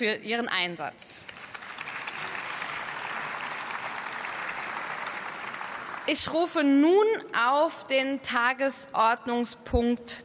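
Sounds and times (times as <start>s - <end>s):
speech: 0.0s - 1.4s, 6.1s - 10.2s
applause: 1.2s - 6.6s.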